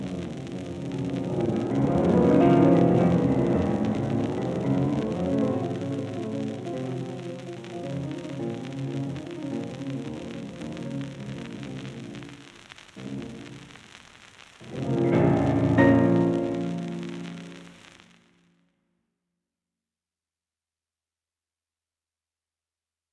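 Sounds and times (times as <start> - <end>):
piano sonata: 0.0 - 11.0, 14.7 - 17.7.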